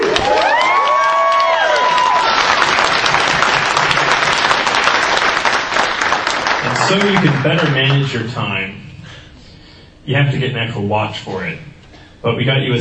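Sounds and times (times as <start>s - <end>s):
audience round of applause: 0.0s - 8.3s
speech: 6.9s - 8.9s, 10.1s - 12.7s.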